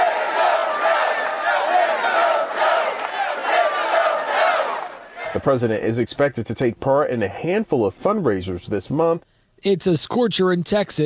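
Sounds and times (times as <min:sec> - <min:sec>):
rally crowd shouting a chant: 0:00.0 - 0:05.4
speech: 0:05.4 - 0:11.0.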